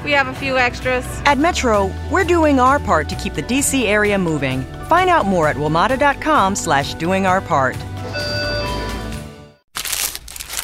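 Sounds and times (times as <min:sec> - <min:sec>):
speech: 0:00.0 - 0:07.9
unwrapping a wrapped McDonald's steak, egg, and cheese bagel sandwich: 0:09.7 - 0:10.6.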